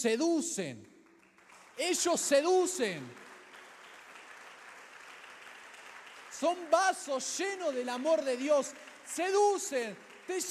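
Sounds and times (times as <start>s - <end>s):
speech: 0.0s - 1.0s, 1.8s - 3.3s, 6.4s - 10.5s
soft applause from a crowd: 0.8s - 10.5s.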